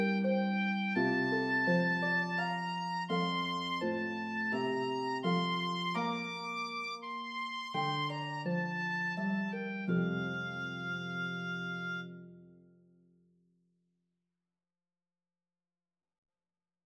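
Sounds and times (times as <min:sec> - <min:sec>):
oboe playing a lullaby: 0:00.0 - 0:12.3
harp playing a lullaby: 0:00.0 - 0:12.5.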